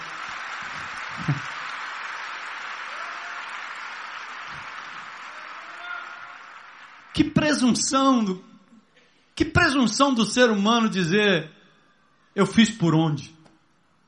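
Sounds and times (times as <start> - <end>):
audience applauding: 0.0 - 7.7
speech: 1.2 - 1.5, 7.2 - 8.5, 9.4 - 11.6, 12.4 - 13.4.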